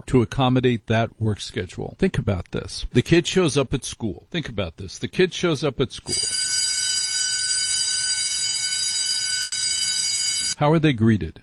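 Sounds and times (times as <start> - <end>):
speech: 0.0 - 6.5, 10.6 - 11.4
harsh school bell ringing: 6.1 - 10.6.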